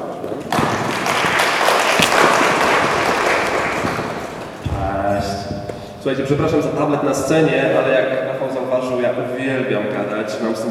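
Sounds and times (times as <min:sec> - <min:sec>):
audience applause: 0:00.5 - 0:04.6
speech: 0:06.0 - 0:10.7.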